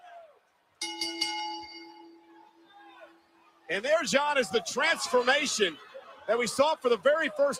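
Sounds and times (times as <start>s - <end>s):
referee ringing a bell: 0.8s - 3.5s
speech: 3.7s - 7.5s.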